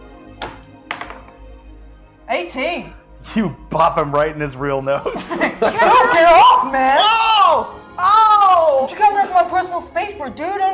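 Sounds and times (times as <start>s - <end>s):
d20 die rolled on table: 0.4s - 1.4s
speech: 2.4s - 8.2s, 8.8s - 10.7s
laughter: 5.0s - 7.2s.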